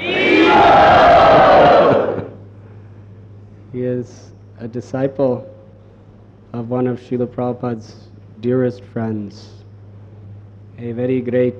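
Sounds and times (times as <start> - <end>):
crowd chanting in welcome of a visiting Vaishnava monk: 0.0 - 2.4
speech: 4.0 - 5.5, 6.5 - 9.6, 10.8 - 11.5.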